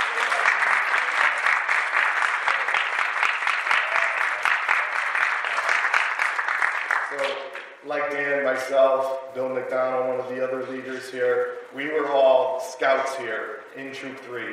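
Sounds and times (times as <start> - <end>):
audience applause: 0.0 - 7.8
speech: 7.8 - 14.5.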